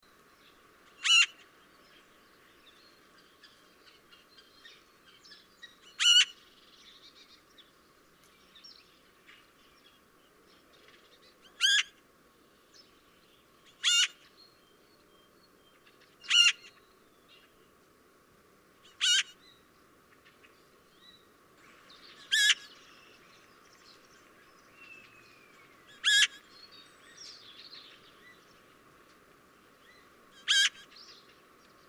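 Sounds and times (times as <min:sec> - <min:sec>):
Eurasian magpie Pica pica uttering harsh rasping notes: 0:01.0 - 0:01.4, 0:06.0 - 0:06.4, 0:11.6 - 0:11.9, 0:13.8 - 0:14.2, 0:16.3 - 0:16.7, 0:18.9 - 0:19.4, 0:22.3 - 0:22.7, 0:25.9 - 0:26.4, 0:30.4 - 0:30.9.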